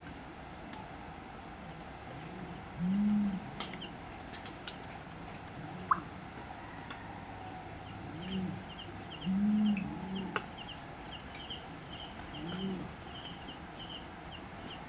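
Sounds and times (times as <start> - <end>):
male and female brown fish owls hooting in a duet: 5.8 - 14.1.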